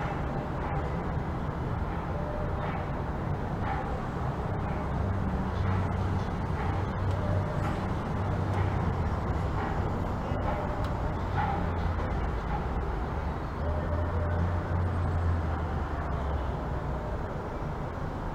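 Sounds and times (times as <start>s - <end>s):
city street traffic rumble: 0.0s - 18.3s
low engine drones: 0.0s - 18.3s.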